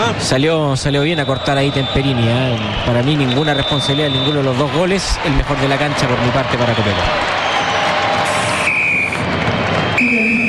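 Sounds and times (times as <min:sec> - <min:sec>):
speech: 0:00.1 - 0:07.4
referee's final whistle: 0:01.0 - 0:04.6, 0:08.4 - 0:09.2, 0:09.8 - 0:10.4.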